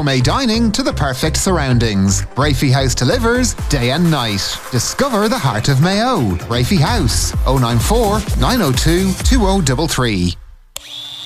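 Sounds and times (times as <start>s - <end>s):
speech: 0.0s - 10.4s
power tool switch click: 10.7s - 11.2s
Milwaukee angle grinder or Makita multi-tool whining: 10.8s - 11.2s.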